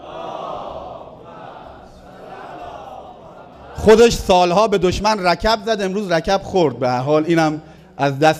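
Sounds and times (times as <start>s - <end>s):
crowd chanting the salawat in unison: 0.0s - 4.1s
speech: 3.8s - 8.3s.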